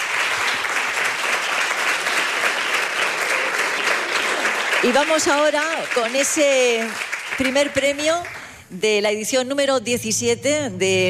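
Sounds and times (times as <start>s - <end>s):
audience applause: 0.0s - 8.6s
speech: 4.8s - 11.0s.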